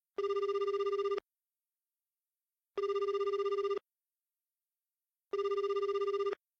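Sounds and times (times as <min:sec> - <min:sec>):
dial tone: 0:00.2 - 0:01.2, 0:02.8 - 0:03.8, 0:05.3 - 0:06.5.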